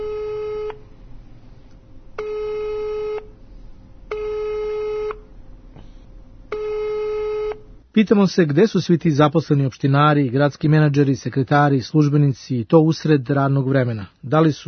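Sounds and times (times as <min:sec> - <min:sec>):
telephone busy signal: 0:00.0 - 0:00.8, 0:02.2 - 0:03.3, 0:04.1 - 0:05.2, 0:06.5 - 0:07.6
speech: 0:08.0 - 0:14.6.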